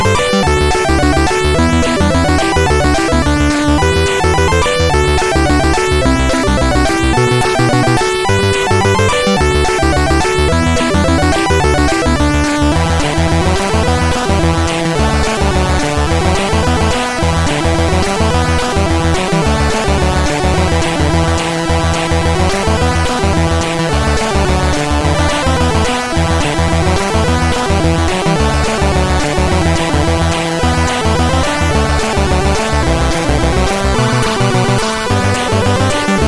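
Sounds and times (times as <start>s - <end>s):
shoot em up chiptune game music on a SID chip: 0.0s - 36.2s.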